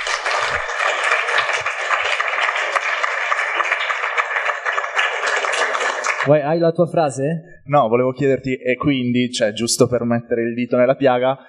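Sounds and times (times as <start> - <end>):
applause: 0.0 - 6.3
speech: 6.3 - 11.4.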